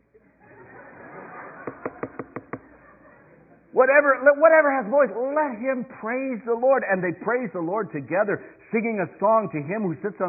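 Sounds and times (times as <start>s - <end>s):
laughter: 0.4s - 3.6s
person imitating woodpecker knocks: 1.6s - 2.6s
speech: 3.8s - 10.2s.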